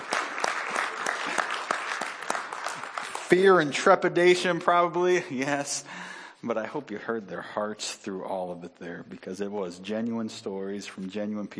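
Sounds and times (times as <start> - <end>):
audience applause: 0.0 - 3.6
speech: 3.3 - 11.5.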